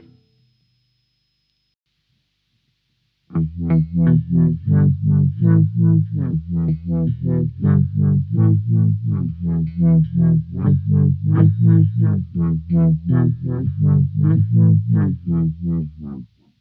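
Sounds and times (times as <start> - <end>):
floating musical phrase: 3.3 - 16.3.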